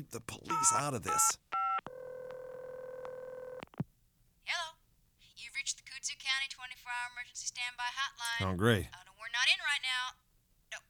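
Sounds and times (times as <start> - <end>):
speech: 0.0 - 1.4, 6.9 - 10.8
telephone dial tone: 0.5 - 3.8.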